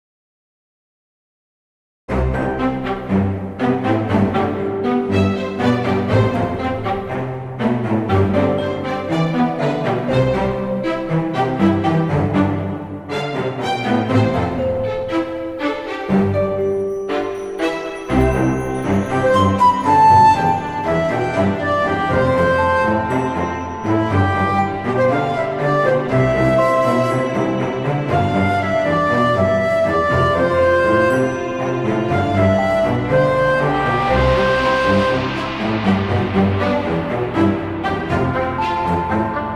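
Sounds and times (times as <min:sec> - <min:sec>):
optimistic orchestral music: 0:02.1 - 0:39.5.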